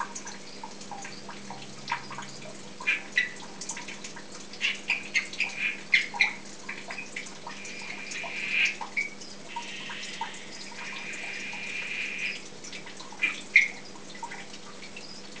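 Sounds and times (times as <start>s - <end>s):
Dendropsophus columbianus calling: 2.0s - 3.4s, 4.6s - 6.4s, 7.5s - 12.4s, 13.2s - 13.8s.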